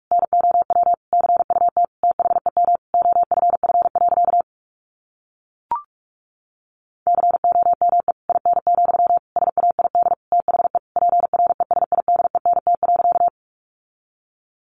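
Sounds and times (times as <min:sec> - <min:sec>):
700 Hz Morse code beeps: 0:00.1 - 0:04.4, 0:07.1 - 0:13.3.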